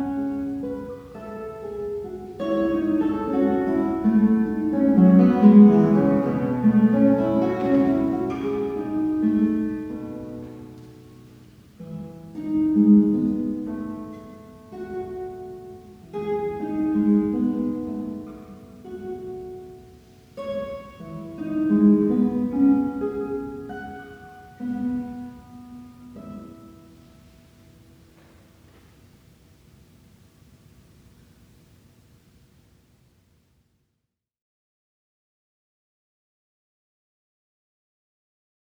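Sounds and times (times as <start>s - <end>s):
guitar: 0.0s - 30.1s.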